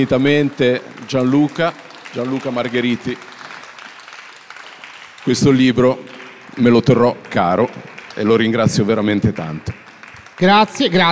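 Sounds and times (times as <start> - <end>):
speech: 0.0 - 3.3, 5.2 - 9.8, 10.4 - 11.1
audience applause: 0.0 - 11.1.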